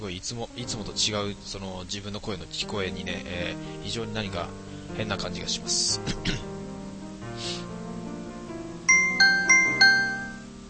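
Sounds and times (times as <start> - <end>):
speech: 0.0 - 6.5
soft steady musical hum: 0.0 - 10.6
bright electronic ding-dong chime: 8.9 - 10.5.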